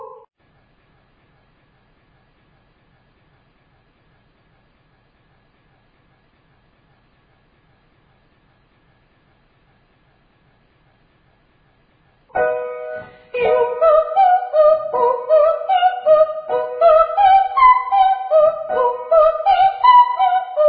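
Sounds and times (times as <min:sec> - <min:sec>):
very high triads and octaves: 0:12.4 - 0:20.5.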